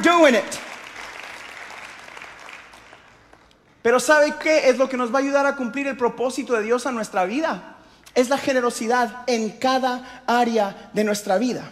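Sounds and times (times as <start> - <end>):
speech: 0.0 - 0.7, 3.8 - 11.7
audience applause: 0.6 - 3.5.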